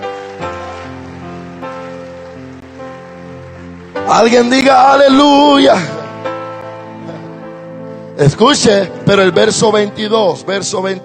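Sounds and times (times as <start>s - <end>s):
audience applause: 0.0s - 7.3s
speech: 4.1s - 6.0s, 8.2s - 11.0s.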